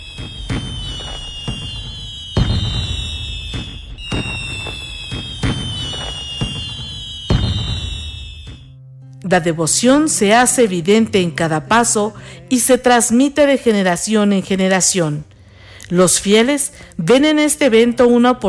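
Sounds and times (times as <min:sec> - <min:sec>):
fireworks exploding: 0:00.0 - 0:08.7
speech: 0:09.3 - 0:15.3, 0:15.9 - 0:18.4.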